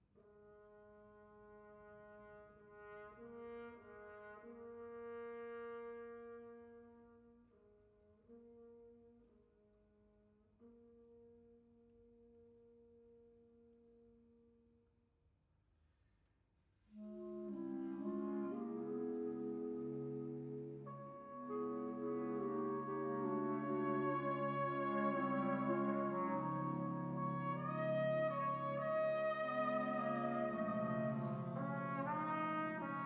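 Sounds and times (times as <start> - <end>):
piano concerto slow movement: 17.0 - 33.0.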